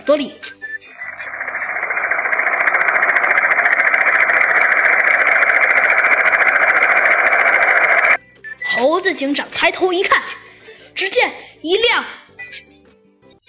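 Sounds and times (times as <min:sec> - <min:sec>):
speech: 0:00.0 - 0:00.6, 0:09.0 - 0:10.4, 0:11.0 - 0:12.2
helicopter engine: 0:00.9 - 0:08.2.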